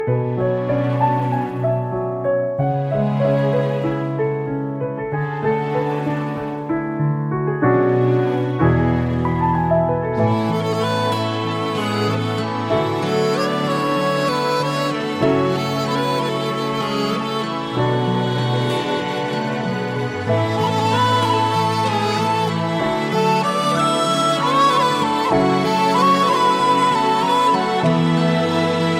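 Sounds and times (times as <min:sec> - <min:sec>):
instrumental music: 0:00.0 - 0:28.9.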